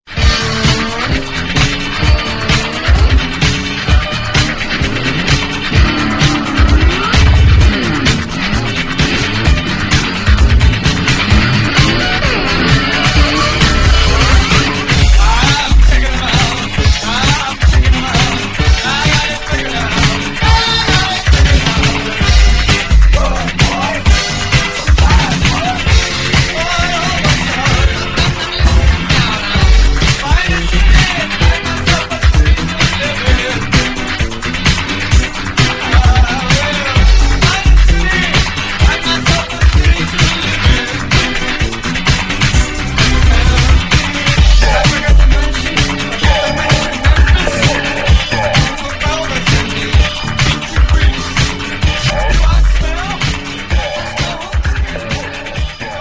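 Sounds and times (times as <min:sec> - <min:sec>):
electro music: 0:00.0 - 0:55.9.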